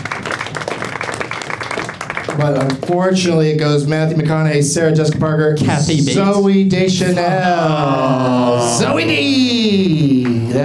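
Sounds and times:
applause: 0:00.0 - 0:03.6, 0:10.1 - 0:10.6
speech: 0:02.4 - 0:10.6.

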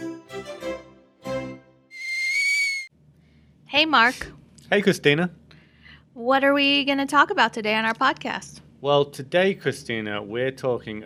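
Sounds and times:
kettle whistling: 0:01.9 - 0:02.9
speech: 0:03.8 - 0:05.4, 0:06.2 - 0:11.0.

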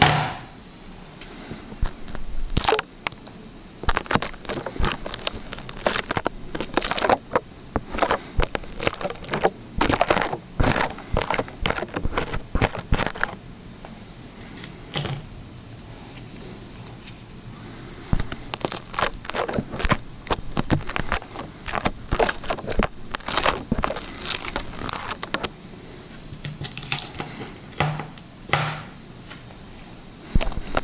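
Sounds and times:
faint low hum: 0:00.0 - 0:30.8
liquid slime squished and pulled: 0:01.8 - 0:03.2, 0:03.8 - 0:13.4, 0:18.1 - 0:25.5, 0:30.2 - 0:30.8.

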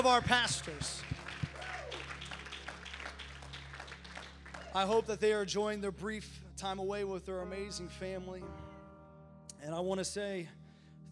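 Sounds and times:
speech: 0:00.0 - 0:01.0, 0:04.7 - 0:08.7, 0:09.6 - 0:10.6
audience clapping hands: 0:00.0 - 0:05.1.

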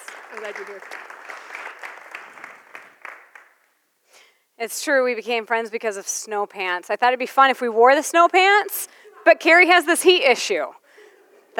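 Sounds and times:
audience clapping welcoming a speaker at an Alive in Granville neighborhood event: 0:00.0 - 0:03.8
speech: 0:00.3 - 0:01.2, 0:04.6 - 0:10.8.

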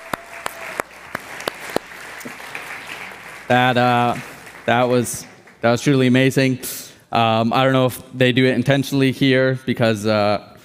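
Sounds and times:
loud sustained audience cheer: 0:00.0 - 0:05.5
audience applause: 0:00.0 - 0:06.2
speech: 0:03.5 - 0:10.5.

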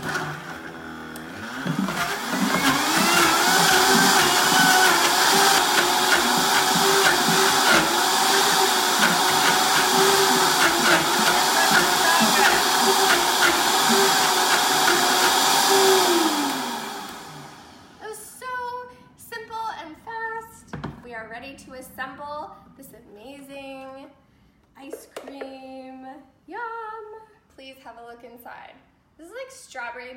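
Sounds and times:
blender blending ice cream ingredients: 0:00.0 - 0:18.0.

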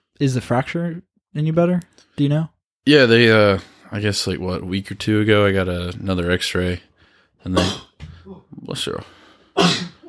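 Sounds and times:
speech: 0:00.2 - 0:09.9
loud sneeze: 0:09.6 - 0:10.0.

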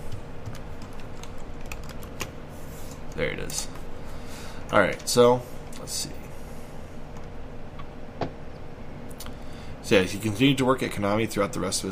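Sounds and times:
typing on a computer keyboard: 0:00.4 - 0:02.3
speech: 0:03.2 - 0:03.8, 0:04.7 - 0:06.2, 0:09.9 - 0:11.8.

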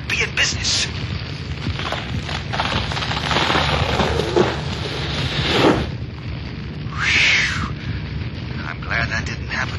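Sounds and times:
brighter hissing burst: 0:00.0 - 0:09.7
heavy rumbling surges: 0:00.0 - 0:09.7
roaring fire crackle in a burning building: 0:00.0 - 0:09.7
staircase collapsing in a burning building, radio drama effect: 0:01.6 - 0:06.0.

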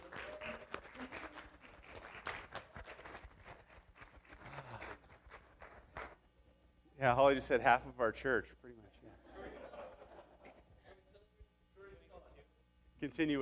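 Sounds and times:
round of applause: 0:00.0 - 0:06.2
speech: 0:07.0 - 0:08.6, 0:13.0 - 0:13.4
laughter: 0:09.2 - 0:11.1.

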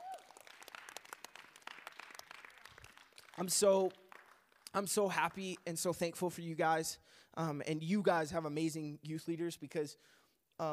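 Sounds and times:
audience applause: 0:00.0 - 0:04.7
speech: 0:03.4 - 0:04.0, 0:04.7 - 0:10.7.

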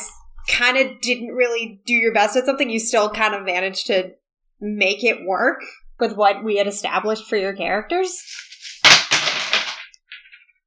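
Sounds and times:
speech: 0:00.5 - 0:09.2
dice clattering onto a hard floor: 0:08.2 - 0:10.4.

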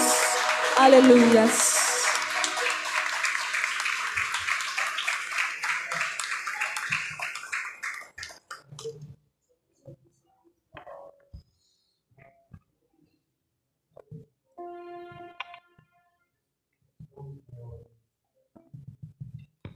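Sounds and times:
audience applause: 0:00.0 - 0:08.5
speech: 0:00.8 - 0:01.7.

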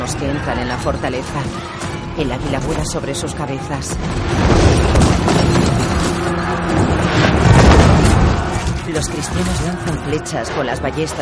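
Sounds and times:
speech: 0:00.1 - 0:04.6, 0:08.9 - 0:11.1
fireballs hurled against a fortress booming: 0:04.0 - 0:09.3.

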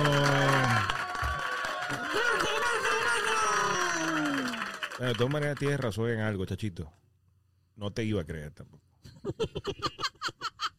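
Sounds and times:
excited voices: 0:00.0 - 0:05.6
crowd applause: 0:00.0 - 0:05.9
speech: 0:05.0 - 0:07.0, 0:07.8 - 0:10.4
laughter: 0:09.1 - 0:10.7.

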